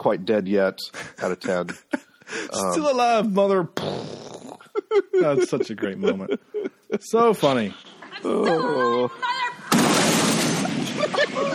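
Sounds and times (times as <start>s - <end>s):
speech: 0.0s - 4.0s, 5.2s - 9.3s
laughter: 0.9s - 3.0s, 4.5s - 9.1s, 10.4s - 11.5s
explosion: 9.7s - 11.5s.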